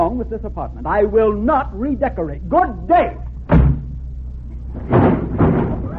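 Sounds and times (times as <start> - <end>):
speech: 0.2 - 3.2
door falling off its hinges: 4.8 - 5.9.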